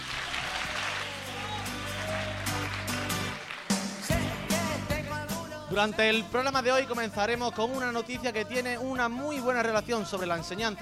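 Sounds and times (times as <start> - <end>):
audience applause: 0.0 - 4.8
speech: 5.8 - 10.8.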